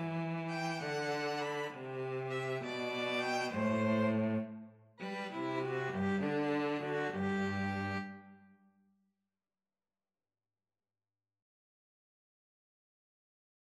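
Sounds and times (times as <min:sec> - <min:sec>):
string trio playing a pastorale: 0:00.0 - 0:08.2.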